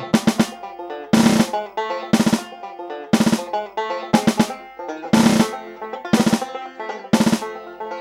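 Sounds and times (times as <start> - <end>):
five-stroke drum roll: 0.1 - 2.5, 3.1 - 6.5, 7.1 - 7.7.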